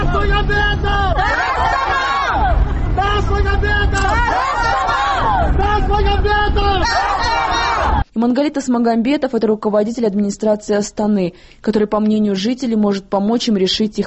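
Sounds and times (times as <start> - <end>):
crowd shouting a slogan on a square: 0.0 - 8.0
speech: 0.2 - 1.4, 8.2 - 14.0.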